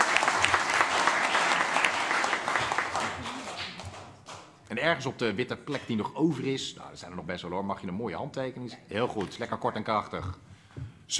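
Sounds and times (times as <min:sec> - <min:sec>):
enthusiastic applause from a group: 0:00.0 - 0:04.4
speech: 0:04.8 - 0:10.5.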